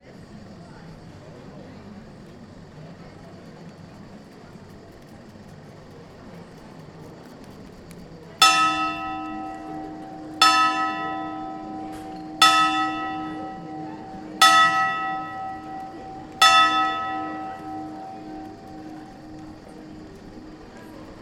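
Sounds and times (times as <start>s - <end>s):
people in background in Trogir, Croatia: 0.0s - 21.1s
tower clock striking in Trogir, Croatia: 8.4s - 20.6s.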